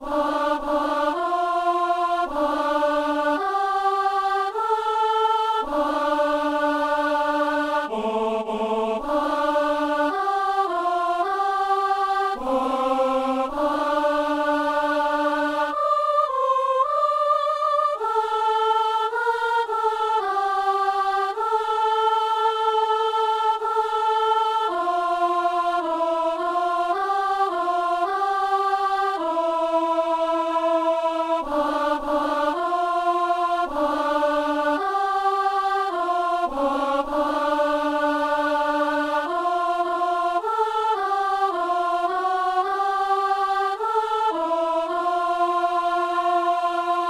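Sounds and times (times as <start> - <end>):
soloist and alto singing a simple Kyrie mass: 0.0 - 47.0.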